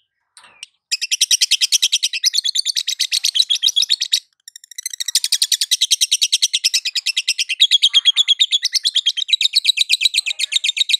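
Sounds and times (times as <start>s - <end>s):
lovebird chattering in konslet style: 0.4s - 10.9s.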